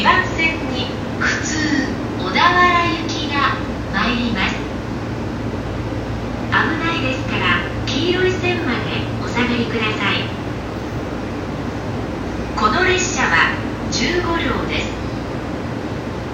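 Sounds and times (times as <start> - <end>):
train sounds on the JR Tokaido and Gotemba lines south of Kozu: 0.0 - 16.3.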